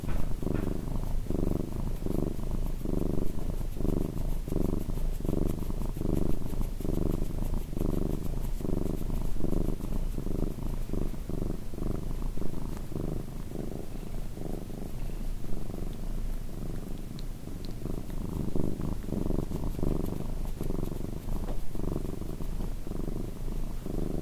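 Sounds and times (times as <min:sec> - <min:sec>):
cat purring: 0:00.0 - 0:24.1.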